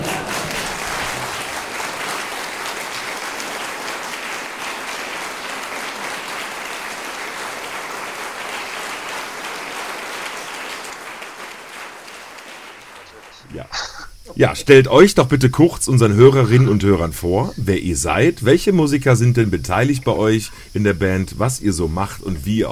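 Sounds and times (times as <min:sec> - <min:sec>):
laughter: 0:00.0 - 0:11.0, 0:12.4 - 0:20.4
applause: 0:00.0 - 0:13.6, 0:16.2 - 0:16.7
speech: 0:13.6 - 0:22.7.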